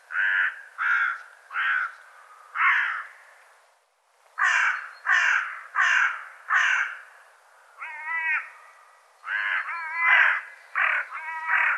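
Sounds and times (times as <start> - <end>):
bird calling with rough grating caws: 0.1 - 3.2, 4.4 - 11.7.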